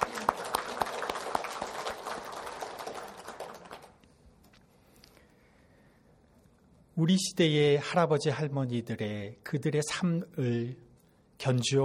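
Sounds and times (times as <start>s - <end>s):
audience applauding: 0.0s - 4.0s
speech: 7.0s - 10.8s, 11.4s - 11.8s.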